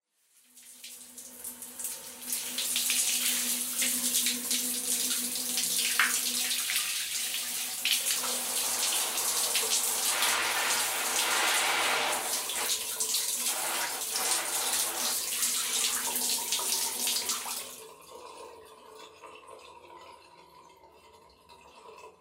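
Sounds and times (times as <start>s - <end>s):
shower water running during a bath: 0.3s - 17.9s.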